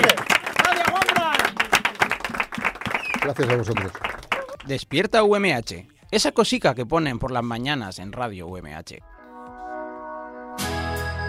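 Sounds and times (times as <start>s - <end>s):
audience clapping during a panettone tasting: 0.0s - 5.0s
speech: 3.2s - 9.1s.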